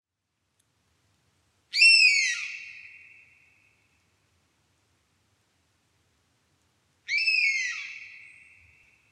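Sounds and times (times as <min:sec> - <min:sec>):
European honey buzzard plaintive whistled call: 0:01.8 - 0:03.4, 0:07.1 - 0:08.7.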